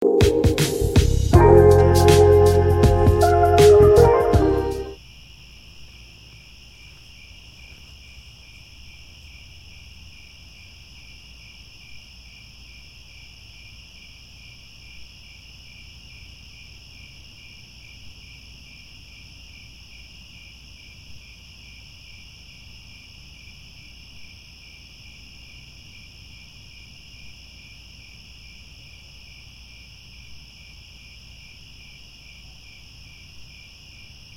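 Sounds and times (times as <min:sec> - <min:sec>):
crickets chirping: 0:00.9 - 0:34.3.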